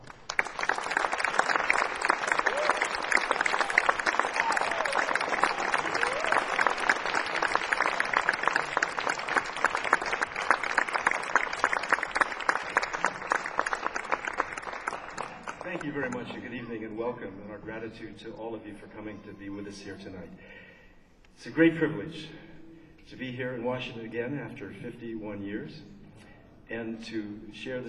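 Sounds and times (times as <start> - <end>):
audience applause at a concert in Washington: 0.0 - 16.4
speech: 16.2 - 20.6, 21.4 - 22.4, 23.2 - 25.9, 26.7 - 27.8.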